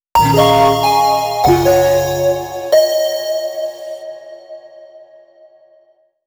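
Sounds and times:
musical chord: 0.2s - 4.3s.

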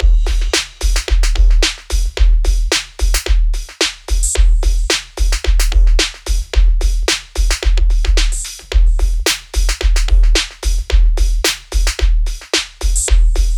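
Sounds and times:
junk hip hop beat: 0.0s - 13.5s.

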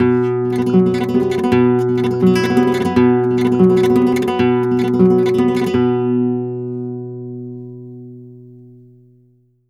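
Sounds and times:
flamenco guitar tremolos: 0.0s - 7.4s.

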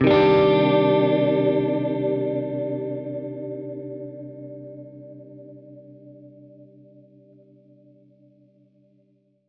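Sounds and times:
Gretsch guitar C minor add nine chord: 0.0s - 7.2s.

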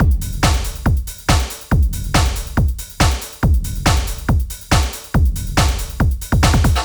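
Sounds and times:
trance drum kit: 0.0s - 6.8s.

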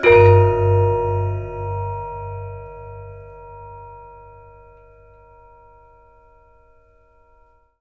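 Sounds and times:
gamelan hit: 0.0s - 5.3s.

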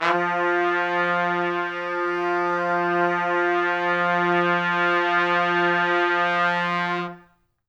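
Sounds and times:
F2 pop brass note: 0.0s - 7.3s.

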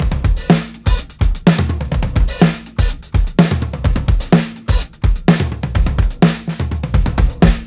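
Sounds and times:
tom drum fills loop: 0.0s - 7.6s.

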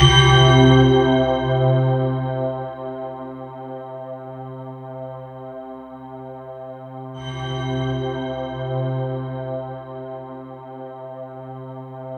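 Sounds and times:
synth line in C3: 0.0s - 2.7s.

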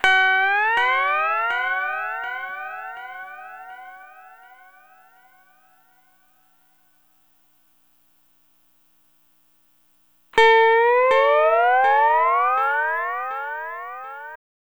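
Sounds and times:
lounge guitar effect in E: 0.0s - 4.7s, 10.4s - 14.4s.

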